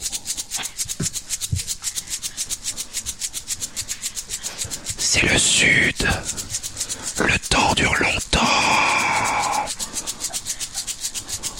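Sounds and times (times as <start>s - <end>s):
crickets chirping on a summer night: 0.0s - 11.5s
speech: 5.4s - 6.6s.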